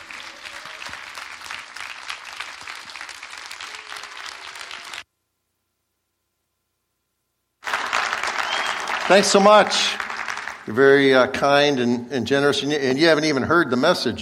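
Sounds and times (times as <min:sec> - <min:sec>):
audience applause: 0:00.0 - 0:05.0, 0:07.6 - 0:11.0
speech: 0:09.1 - 0:10.0, 0:10.7 - 0:14.2.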